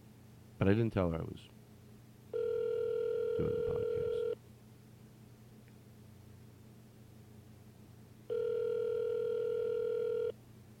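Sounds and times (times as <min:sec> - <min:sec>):
faint low hum: 0:00.0 - 0:10.7
speech: 0:00.6 - 0:01.6, 0:03.4 - 0:03.8
telephone ringback tone on an outgoing call: 0:02.3 - 0:04.4, 0:08.3 - 0:10.4.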